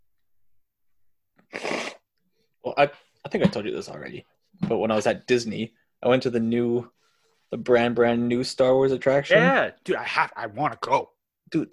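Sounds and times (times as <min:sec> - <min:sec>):
person blowing nose: 0:01.5 - 0:02.1
speech: 0:02.8 - 0:11.7.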